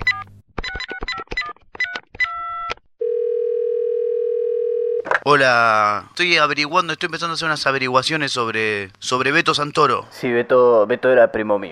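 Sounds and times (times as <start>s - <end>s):
telephone dial tone: 2.4s - 5.1s
speech: 5.3s - 11.6s.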